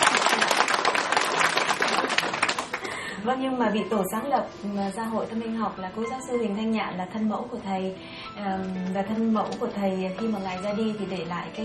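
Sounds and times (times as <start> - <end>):
audience applause at a presentation of a spiritual society: 0.0 - 3.1
speech: 3.2 - 11.6.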